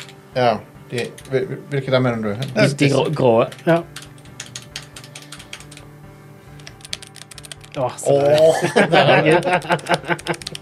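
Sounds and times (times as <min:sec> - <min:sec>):
speech: 0:00.4 - 0:04.0, 0:07.8 - 0:10.6
key presses on a heavy computer keyboard: 0:03.5 - 0:05.8, 0:06.6 - 0:08.5, 0:09.4 - 0:10.6
laughter: 0:08.3 - 0:10.6.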